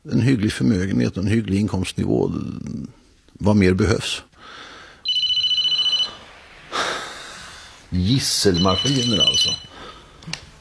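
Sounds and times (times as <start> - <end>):
speech: 0.0 - 4.6, 7.9 - 9.7
phone ringtone: 5.1 - 6.3, 8.4 - 9.8.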